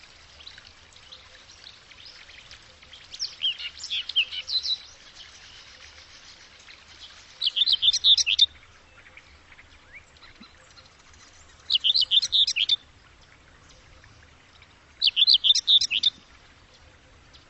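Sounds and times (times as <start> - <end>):
bird call of high rapid chirps: 3.0 - 12.8, 15.0 - 16.2.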